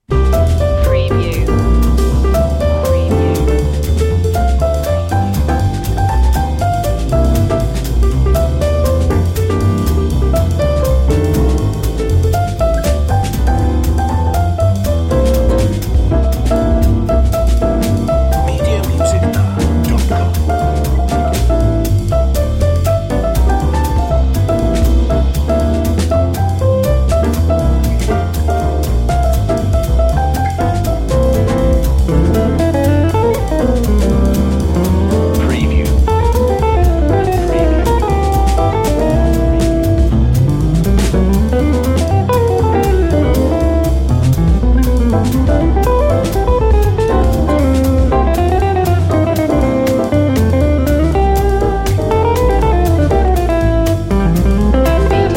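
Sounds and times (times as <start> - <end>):
jazz Christmas tune: 0.0 - 55.3.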